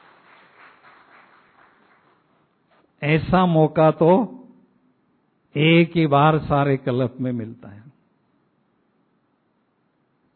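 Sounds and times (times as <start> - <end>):
audience clapping: 0.0 - 2.9
speech: 3.0 - 4.4, 5.5 - 7.9.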